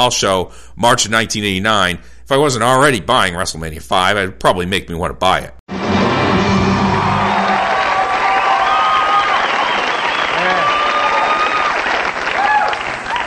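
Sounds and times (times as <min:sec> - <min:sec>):
speech: 0:00.0 - 0:05.8
studio audience applauding: 0:06.9 - 0:13.2
studio audience whoops and shouts: 0:07.4 - 0:13.2.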